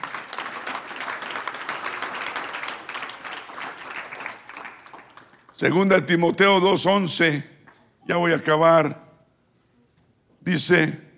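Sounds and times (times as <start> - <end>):
audience applause: 0.0 - 5.6
speech: 5.6 - 7.5, 8.1 - 9.0, 10.4 - 11.1.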